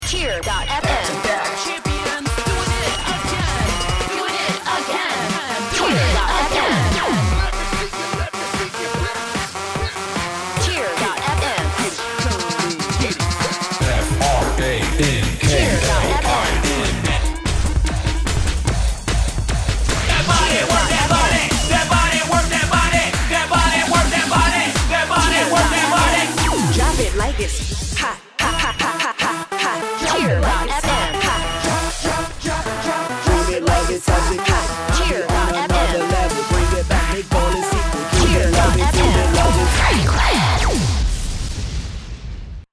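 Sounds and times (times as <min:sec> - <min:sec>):
dance music loop: 0:00.0 - 0:40.8.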